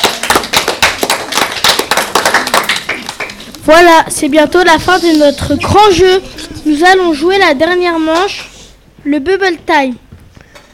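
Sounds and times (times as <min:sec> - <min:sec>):
audience applause: 0:00.0 - 0:03.5
speech: 0:03.7 - 0:10.0.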